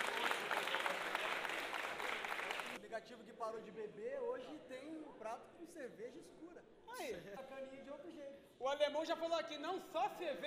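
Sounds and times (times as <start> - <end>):
studio audience applauding a chef on a cooking show: 0.0 - 2.8
speech: 3.0 - 10.4.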